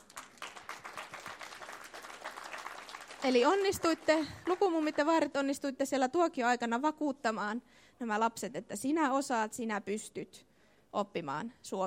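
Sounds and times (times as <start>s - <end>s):
room full of people applauding: 0.0s - 5.0s
speech: 3.2s - 11.8s.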